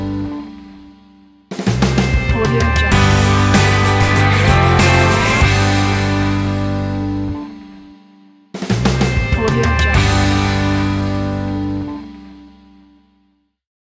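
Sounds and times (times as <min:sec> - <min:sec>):
inspiring rock ident music: 0:01.6 - 0:07.8, 0:08.6 - 0:12.5.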